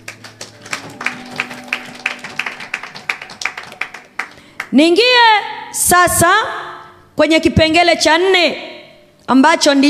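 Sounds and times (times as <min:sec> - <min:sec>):
church congregation clapping for Jesus during a sermon: 0:00.0 - 0:04.8
speech: 0:04.7 - 0:06.6, 0:07.2 - 0:08.7, 0:09.3 - 0:09.8.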